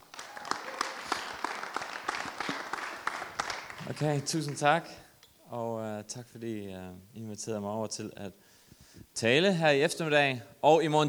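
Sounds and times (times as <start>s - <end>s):
audience applause welcoming a speaker: 0.0s - 4.9s
speech: 3.9s - 8.5s, 9.2s - 11.0s.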